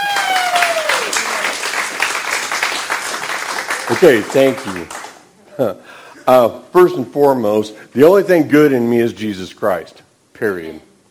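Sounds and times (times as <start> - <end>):
audience applause: 0.0 - 5.3
speech: 3.9 - 5.0, 5.6 - 10.9.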